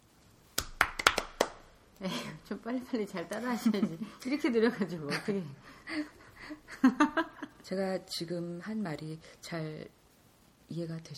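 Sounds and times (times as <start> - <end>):
sharp hand claps: 0.6 - 1.7
speech: 2.0 - 10.0, 10.7 - 11.1
laughter: 3.4 - 7.6.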